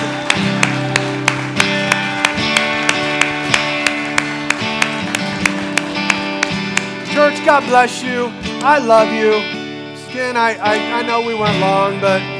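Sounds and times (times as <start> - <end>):
audience clapping: 0.0 - 7.8
speech: 7.6 - 12.3.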